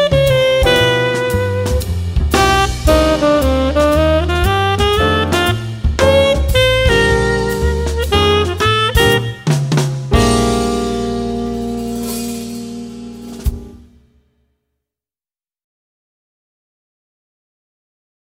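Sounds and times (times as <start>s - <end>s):
jazz tenor saxophone solo: 0.0s - 13.9s.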